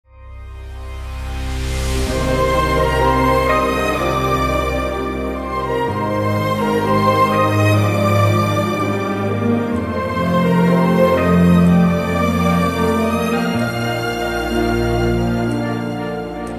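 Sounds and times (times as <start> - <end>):
instrumental music: 0.1 - 16.5.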